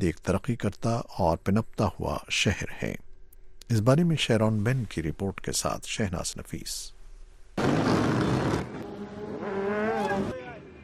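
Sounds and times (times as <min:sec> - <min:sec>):
speech: 0:00.0 - 0:03.0, 0:03.7 - 0:07.0
motorcycles roaring on city streets in Baghdad: 0:07.6 - 0:10.8.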